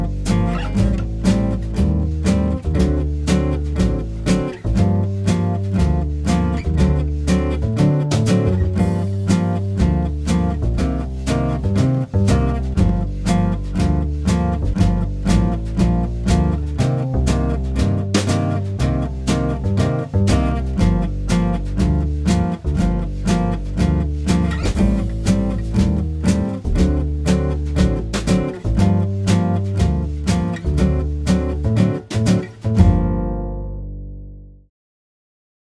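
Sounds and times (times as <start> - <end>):
minor blues in G minor: 0.0 - 34.2.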